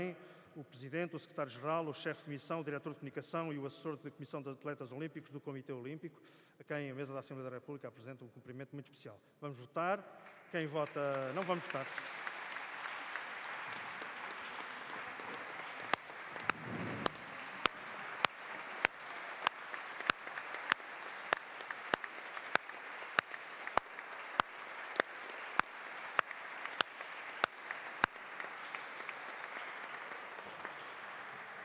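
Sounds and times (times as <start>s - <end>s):
speech: 0.1s - 12.2s
applause in a parliamentary assembly chamber: 10.2s - 31.6s.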